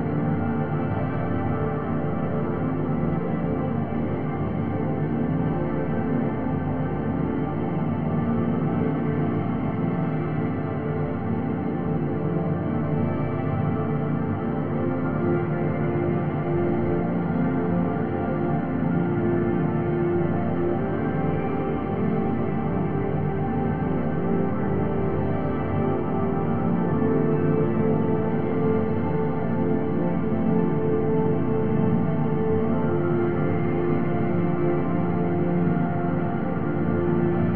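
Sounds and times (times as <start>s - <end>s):
warm ambient chords with panning effects: 0.0s - 37.5s.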